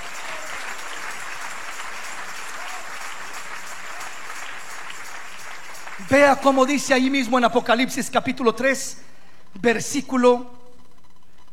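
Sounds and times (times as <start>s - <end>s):
audience applause: 0.0s - 7.0s
speech: 6.0s - 10.6s.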